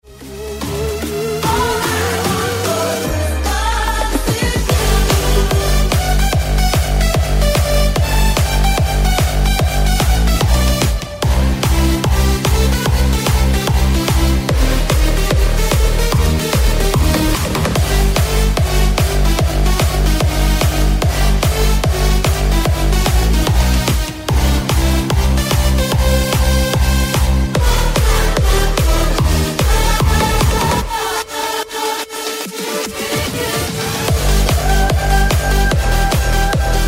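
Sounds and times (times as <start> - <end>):
techno music: 0.0 - 36.8.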